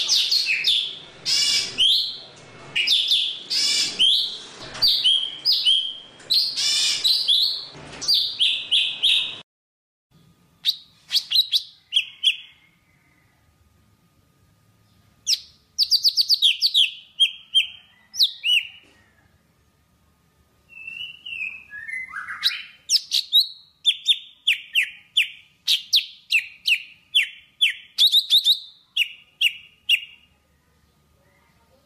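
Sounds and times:
Java sparrow singing: 0:00.1 - 0:02.2, 0:02.8 - 0:09.4, 0:10.6 - 0:12.5, 0:15.3 - 0:18.8, 0:20.7 - 0:30.2.

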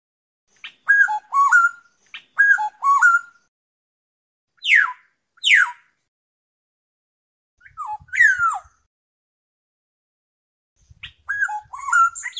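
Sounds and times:
black-naped oriole whistling: 0:00.9 - 0:03.4, 0:07.6 - 0:08.8, 0:11.0 - 0:12.3.

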